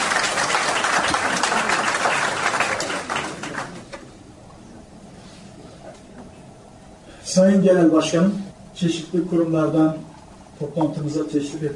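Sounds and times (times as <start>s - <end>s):
conference audience applause at a congress on special education for visually impaired people: 0.0s - 4.0s
speech: 7.4s - 11.7s.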